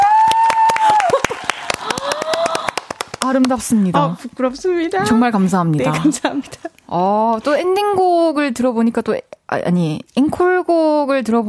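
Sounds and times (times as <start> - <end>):
voices cheering and exclaiming: 0.0 - 2.8
small audience applause: 0.0 - 3.6
speech: 3.3 - 11.4.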